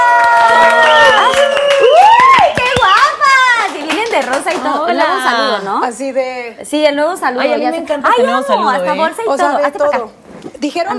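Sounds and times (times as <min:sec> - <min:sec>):
audience cheering: 0:00.0 - 0:03.7
audience applause: 0:00.0 - 0:05.0
speech: 0:05.9 - 0:10.9.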